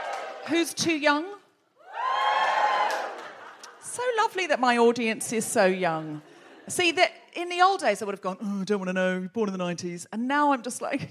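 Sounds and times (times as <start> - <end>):
audience cheering: 0.0 - 0.7, 1.8 - 3.8
speech: 0.5 - 1.4, 4.0 - 11.0.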